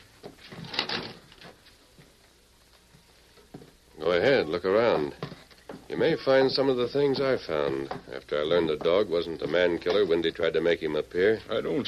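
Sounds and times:
wooden cabin door being pulled open: 0.5s - 1.5s
speech: 4.1s - 5.2s, 5.9s - 11.8s.

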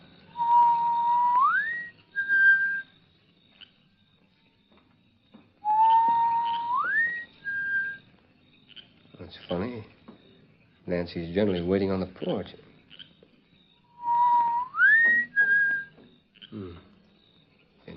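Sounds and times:
person whistling a signal: 0.4s - 2.8s, 5.6s - 8.0s, 14.0s - 15.9s
speech: 10.9s - 12.7s.

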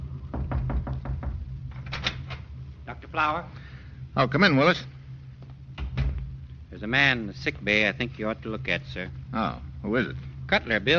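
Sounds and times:
low steady hum aboard a warship: 0.0s - 10.9s
knuckle knocking on the medical officer's door aboard a warship: 0.3s - 1.5s
speech: 2.9s - 3.6s, 4.2s - 5.0s, 6.8s - 10.9s.

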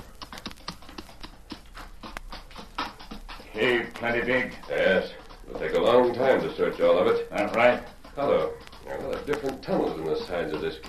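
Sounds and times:
horse hooves clip-clopping into a cave: 0.0s - 10.8s
speech: 3.6s - 8.6s, 9.3s - 10.8s.

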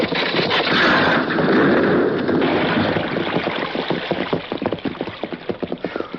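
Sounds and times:
heavily loaded horse-drawn wagon rushing past: 0.0s - 6.1s
hooves and wheels clattering: 0.0s - 6.1s.

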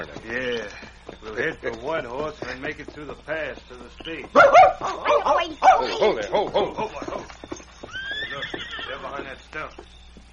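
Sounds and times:
speech: 0.0s - 7.2s, 9.6s - 9.9s
dog barking and whimpering: 4.4s - 6.0s
laughter: 5.8s - 7.5s.

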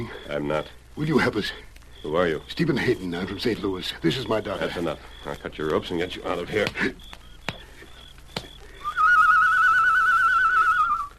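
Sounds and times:
speech: 0.0s - 7.2s
sharp clicks: 5.1s - 9.0s
person whistling imitating a bird call: 8.8s - 11.1s.

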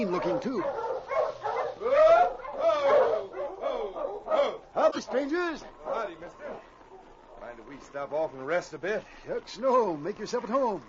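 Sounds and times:
speech: 0.0s - 2.1s, 5.0s - 6.7s, 7.5s - 10.8s
sled dogs whining: 0.0s - 7.6s
sled dogs barking and yelping: 0.0s - 10.8s.

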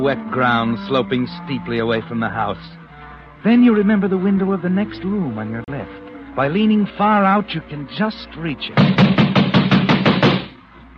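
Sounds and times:
speech: 0.0s - 2.8s, 3.4s - 9.1s
heavy pounding on a door: 8.8s - 10.6s.

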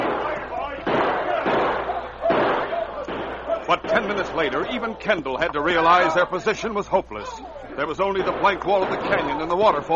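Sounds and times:
gunshots in a shootout: 0.0s - 5.0s, 8.0s - 9.9s
speech: 3.8s - 9.9s.

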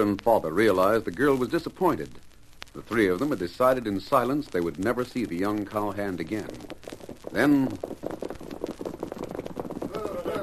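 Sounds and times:
speech: 0.0s - 8.0s
several horses approaching outside: 4.7s - 10.4s.

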